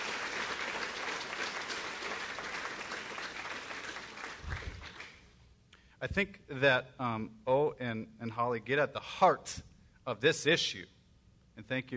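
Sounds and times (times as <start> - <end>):
audience applause: 0.0 - 5.3
speech: 6.0 - 11.0, 11.6 - 11.9.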